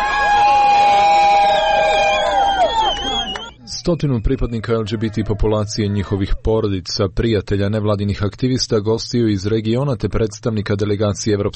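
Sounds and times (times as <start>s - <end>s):
crowd shouting and cheering at a march: 0.0s - 6.5s
speech: 3.9s - 11.5s.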